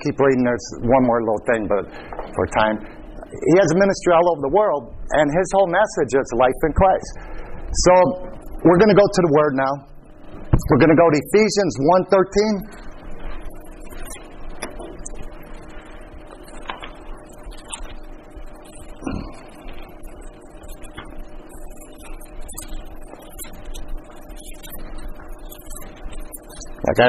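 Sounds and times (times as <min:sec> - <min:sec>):
speech: 0:00.0 - 0:09.9, 0:10.6 - 0:12.9, 0:26.9 - 0:27.0
Bible pages turning: 0:16.3 - 0:18.0.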